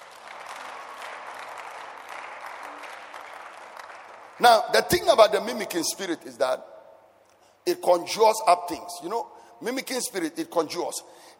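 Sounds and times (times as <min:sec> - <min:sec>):
audience clapping: 0:00.0 - 0:04.4
speech: 0:04.4 - 0:06.7, 0:07.6 - 0:11.3.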